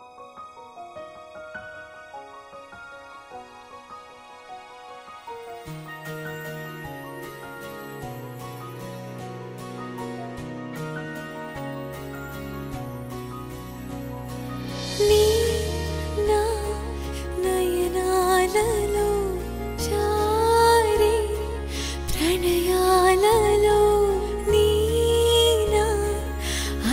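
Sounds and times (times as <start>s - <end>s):
Telugu love song ringtone: 5.4s - 26.9s.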